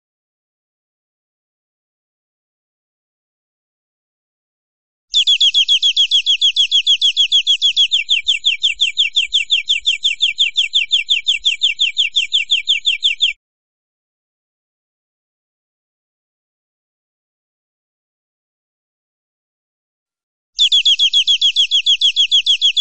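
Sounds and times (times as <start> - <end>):
European greenfinch buzzy trill: 5.1 - 13.4, 20.6 - 22.7.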